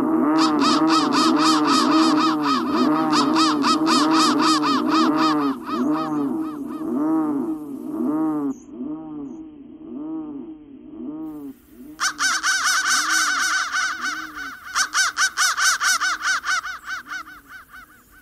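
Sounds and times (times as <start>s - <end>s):
crow deep hoarse arched calls: 0.2s - 8.2s, 12.0s - 18.2s.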